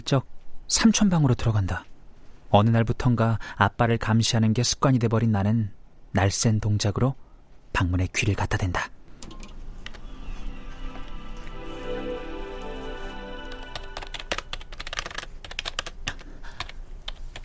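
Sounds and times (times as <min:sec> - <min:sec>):
speech: 0:00.1 - 0:01.9, 0:02.5 - 0:09.0
typing on a computer keyboard: 0:13.6 - 0:17.4.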